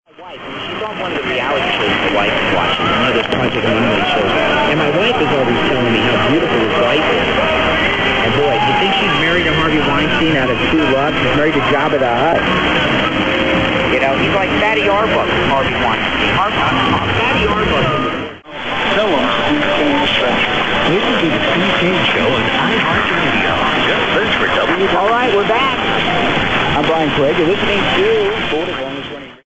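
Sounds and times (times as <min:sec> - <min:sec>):
1470 WWNN radio broadcast from Florida USA: 0:00.1 - 0:29.4.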